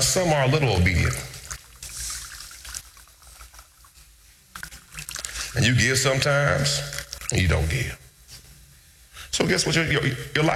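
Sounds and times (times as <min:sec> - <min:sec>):
speech: 0:00.0 - 0:01.3, 0:05.6 - 0:08.0, 0:09.4 - 0:10.5
water flowing from a turned nozzle: 0:00.0 - 0:08.0.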